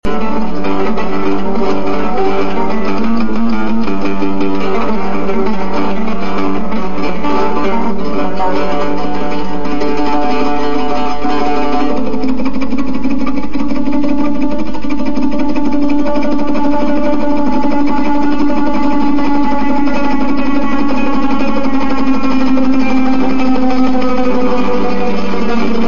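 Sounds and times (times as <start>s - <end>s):
oud: 0.0s - 25.8s.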